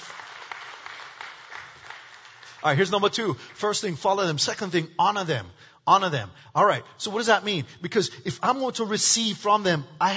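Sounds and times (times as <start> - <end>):
hand clapping: 0.0 - 3.5
speech: 2.6 - 10.1.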